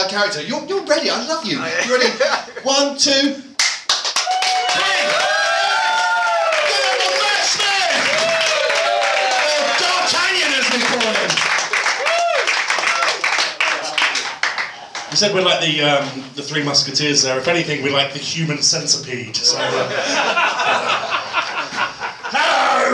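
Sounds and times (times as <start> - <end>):
speech: 0.1 - 3.5, 15.2 - 21.0
laughter: 1.6 - 3.0, 19.5 - 22.8
crowd clapping: 3.6 - 15.3
whoops and shouted cheers: 4.2 - 10.1, 11.9 - 14.0.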